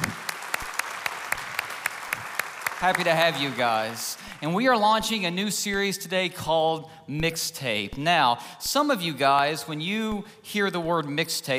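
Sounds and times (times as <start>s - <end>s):
church congregation applauding: 0.0s - 5.2s
speech: 2.8s - 11.5s.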